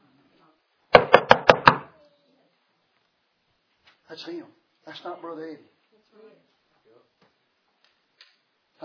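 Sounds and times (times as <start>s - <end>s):
knocking on a wooden door: 0.9s - 1.9s
speech: 4.1s - 7.1s.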